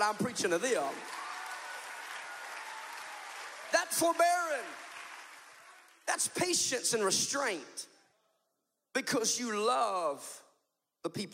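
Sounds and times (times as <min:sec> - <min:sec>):
speech: 0:00.0 - 0:01.2, 0:03.9 - 0:04.9, 0:06.1 - 0:07.9, 0:09.0 - 0:10.4, 0:11.0 - 0:11.3
audience clapping: 0:00.0 - 0:06.4.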